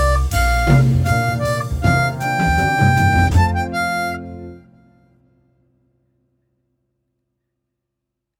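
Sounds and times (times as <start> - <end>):
harp playing in F at 80 bpm: 0.1 - 4.8.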